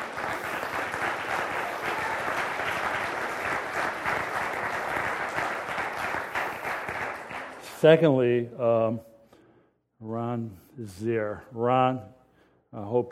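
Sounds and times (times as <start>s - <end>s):
audience applause: 0.0s - 8.1s
speech: 7.8s - 9.1s, 10.1s - 13.1s.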